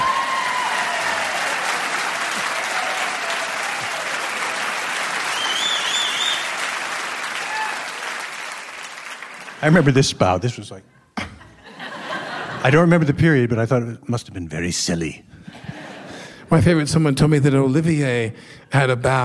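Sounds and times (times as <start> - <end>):
audience applause: 0.0 - 10.0
whistles: 5.2 - 6.6
speech: 9.6 - 11.0, 12.6 - 15.7, 16.5 - 19.2
laughter: 11.2 - 13.1, 15.4 - 16.4.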